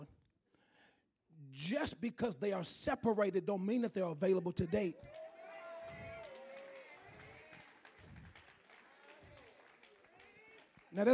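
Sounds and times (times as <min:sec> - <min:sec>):
speech: 0:01.5 - 0:05.2
scattered audience clapping: 0:04.9 - 0:11.1.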